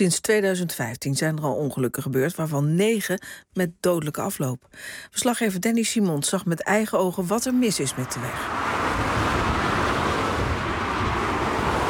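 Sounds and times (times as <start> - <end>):
speech: 0.0 - 9.4
cars racing past on a highway: 7.6 - 11.8.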